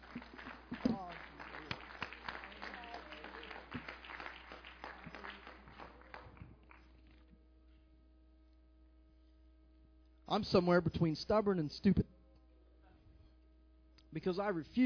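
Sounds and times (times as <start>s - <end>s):
audience clapping hands: 0.0s - 7.3s
speech: 10.3s - 12.2s, 14.2s - 14.8s.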